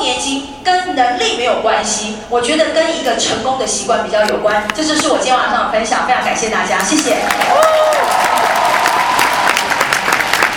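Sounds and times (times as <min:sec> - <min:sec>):
speech: 0:01.0 - 0:08.2
crowd clapping: 0:06.8 - 0:10.5.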